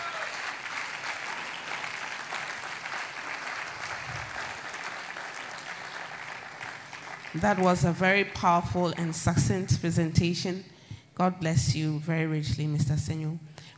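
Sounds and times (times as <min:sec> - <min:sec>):
audience applause: 0:00.0 - 0:07.6
speech: 0:07.4 - 0:13.5.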